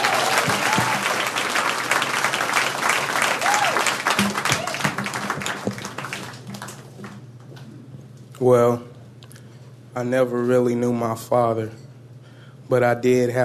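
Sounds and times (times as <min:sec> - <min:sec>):
audience applause: 0:00.0 - 0:07.2
speech: 0:08.4 - 0:08.9, 0:10.0 - 0:11.8, 0:12.7 - 0:13.4.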